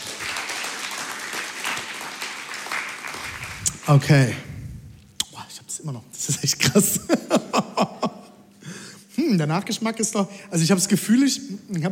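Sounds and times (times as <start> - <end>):
applause: 0.0 - 4.1
speech: 3.9 - 4.4, 5.8 - 7.4, 9.4 - 11.9
laughter: 6.7 - 8.4.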